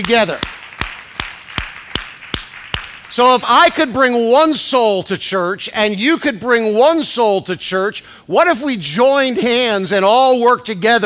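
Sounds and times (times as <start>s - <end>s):
speech: 0.0s - 0.5s, 3.2s - 11.0s
audience clapping in unison: 0.0s - 3.9s.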